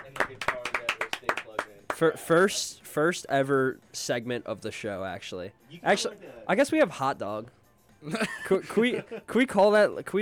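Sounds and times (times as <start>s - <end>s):
a few people clapping for a guest in a studio: 0.0s - 2.2s
speech: 2.0s - 10.2s
laughter: 8.1s - 9.3s.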